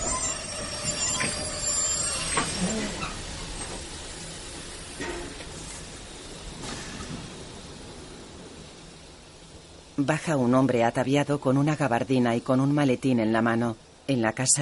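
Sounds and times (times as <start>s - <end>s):
train wheels squealing stopping at a station: 0.0s - 4.0s
train rolling rumble: 0.0s - 14.6s
speech: 10.0s - 14.6s.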